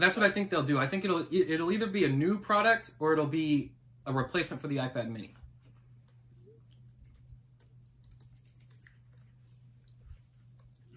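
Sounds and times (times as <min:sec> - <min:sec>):
speech: 0:00.0 - 0:05.4
typing on a computer keyboard: 0:06.0 - 0:10.9.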